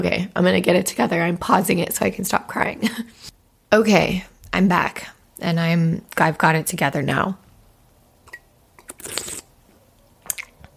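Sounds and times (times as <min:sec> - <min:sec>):
speech: 0:00.0 - 0:07.4
sipping tea for ASMR: 0:08.2 - 0:09.6.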